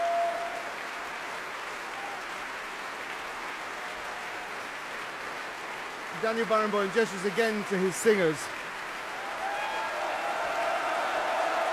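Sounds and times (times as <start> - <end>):
opera house audience applause: 0.0 - 11.7
speech: 6.2 - 8.6.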